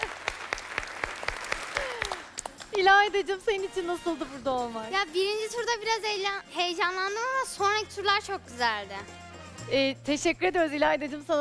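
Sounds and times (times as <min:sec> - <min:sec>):
competition show audience clapping in unison: 0:00.0 - 0:02.8
soft applause: 0:00.0 - 0:02.8
speech: 0:02.8 - 0:11.3.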